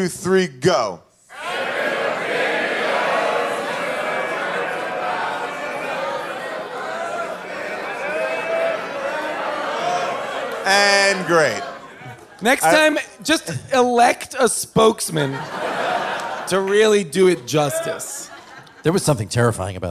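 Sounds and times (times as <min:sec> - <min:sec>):
speech: 0:00.0 - 0:01.1, 0:10.6 - 0:11.7, 0:12.4 - 0:15.8, 0:16.5 - 0:19.8
live audience singing a show's theme song: 0:01.4 - 0:13.0
laughter: 0:01.6 - 0:14.1, 0:14.8 - 0:19.5.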